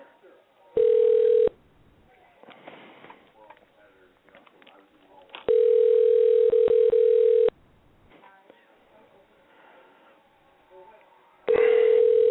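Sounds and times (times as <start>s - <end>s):
telephone dial tone: 0.8s - 1.5s, 5.5s - 7.5s, 11.6s - 12.2s.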